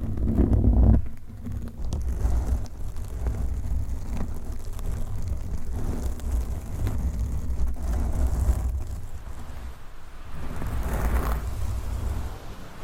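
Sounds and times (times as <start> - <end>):
microphone scratching and rubbing with long nails and mic covers: 0.0 - 12.7.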